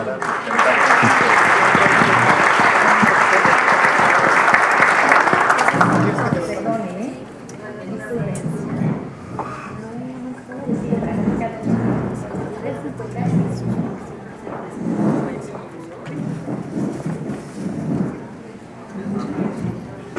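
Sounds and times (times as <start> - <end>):
audience applause: 0.0 - 20.1.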